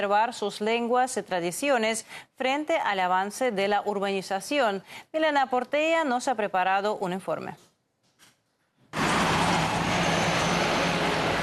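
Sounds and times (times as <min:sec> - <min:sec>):
speech: 0:00.0 - 0:07.7
car traffic noise from nearby highways: 0:09.0 - 0:11.4.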